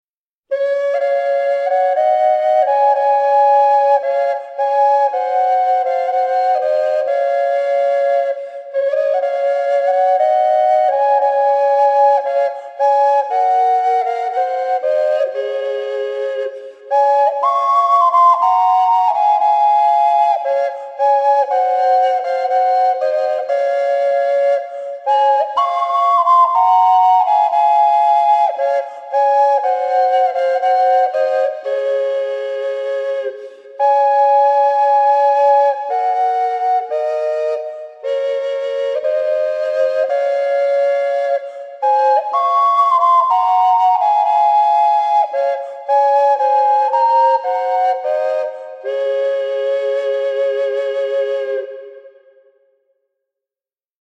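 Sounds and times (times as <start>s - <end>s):
ocarina duet: 0.5s - 52.7s.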